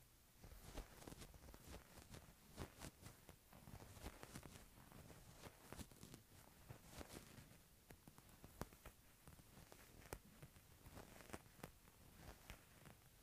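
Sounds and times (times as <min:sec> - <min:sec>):
wool shirt rustling and crinkling: 0:00.4 - 0:13.2.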